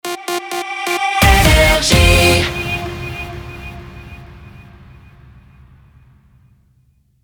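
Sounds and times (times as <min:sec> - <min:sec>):
jingle: 0:01.2 - 0:04.9.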